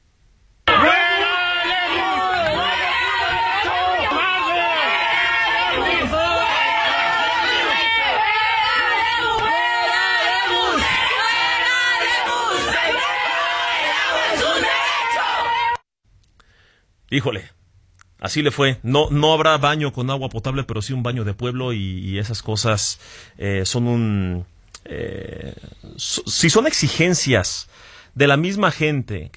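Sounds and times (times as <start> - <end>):
students booing and shouting: 0.7 - 15.8
speech: 17.1 - 17.6, 18.2 - 29.3.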